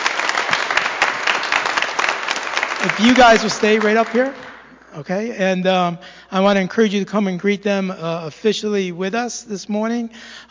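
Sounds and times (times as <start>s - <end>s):
church congregation clapping for newly accepted members: 0.0s - 5.0s
speech: 2.8s - 10.4s.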